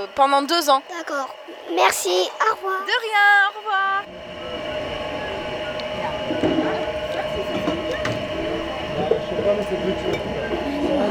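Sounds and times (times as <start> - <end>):
speech: 0.2 - 4.2
machine pressing apple juice in the street: 4.1 - 11.0.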